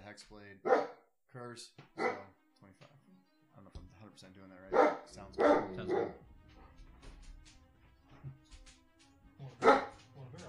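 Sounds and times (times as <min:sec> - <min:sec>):
speech: 0:00.2 - 0:06.3
hellhounds barking in a tabletop fantasy role-playing game: 0:00.6 - 0:01.0, 0:02.0 - 0:02.3, 0:04.7 - 0:06.2, 0:09.6 - 0:10.0.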